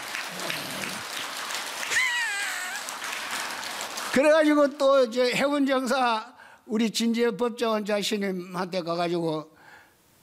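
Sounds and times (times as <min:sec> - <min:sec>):
audience applause: 0:00.0 - 0:04.8
speech: 0:04.2 - 0:09.5.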